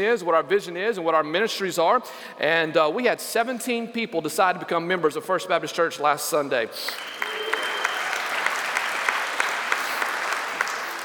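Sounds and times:
speech: 0:00.0 - 0:07.4
audience applause: 0:06.9 - 0:11.0.

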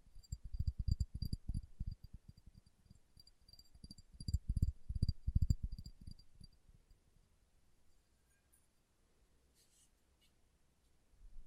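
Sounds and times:
soft fingertip tapping: 0:00.2 - 0:06.2
faint rustle: 0:09.5 - 0:11.0.

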